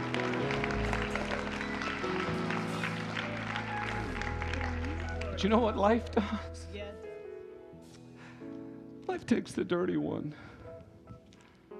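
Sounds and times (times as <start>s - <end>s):
audience clapping: 0.0s - 6.4s
speech: 5.4s - 7.0s, 9.2s - 10.5s.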